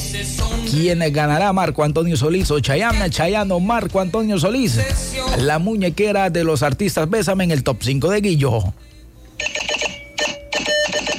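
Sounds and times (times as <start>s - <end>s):
speech: 0.1s - 9.6s
Morse code beeps: 9.4s - 11.1s.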